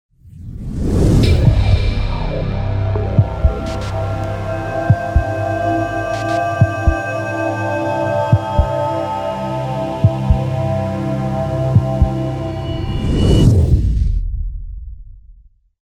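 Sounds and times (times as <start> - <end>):
futuristic logo intro sound: 0.3 - 14.9.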